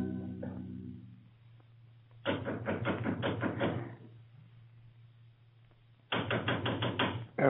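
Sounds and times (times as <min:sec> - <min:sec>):
door knocker pounding on an outer door: 0:02.2 - 0:04.0, 0:06.1 - 0:07.4.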